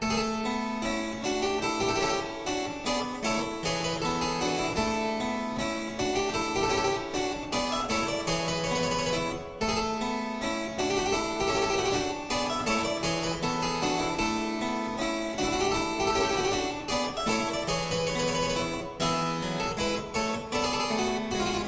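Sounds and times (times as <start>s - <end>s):
minuet: 0.0s - 21.6s.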